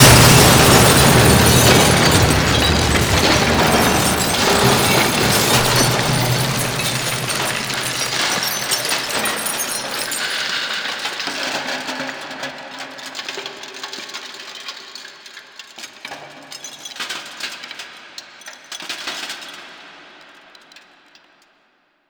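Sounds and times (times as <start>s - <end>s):
crash: 0.0s - 10.5s.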